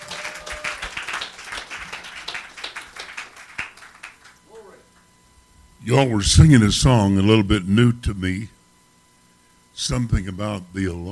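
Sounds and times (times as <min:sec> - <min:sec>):
crowd clapping hands: 0:00.0 - 0:05.0
speech: 0:05.8 - 0:08.6, 0:09.9 - 0:11.1.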